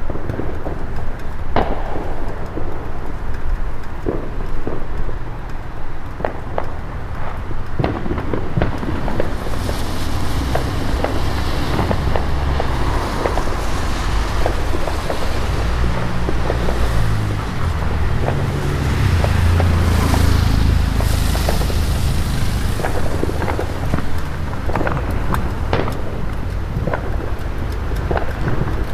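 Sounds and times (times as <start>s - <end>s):
fireworks going off outdoors: 0.0s - 28.9s.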